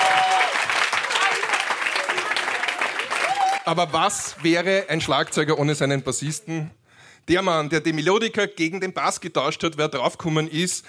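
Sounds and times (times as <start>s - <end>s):
applause: 0.0s - 5.4s
speech: 3.7s - 10.8s.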